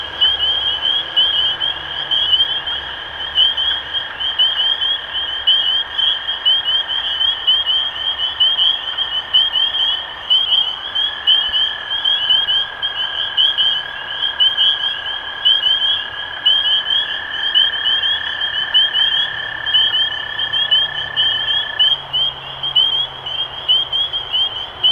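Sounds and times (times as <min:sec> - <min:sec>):
spring peepers peeping in chorus: 0:00.0 - 0:24.9.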